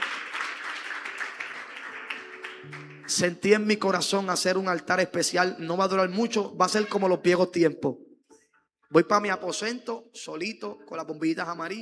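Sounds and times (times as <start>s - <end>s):
church congregation applauding: 0.0s - 4.4s
speech: 2.6s - 8.1s, 8.9s - 11.8s.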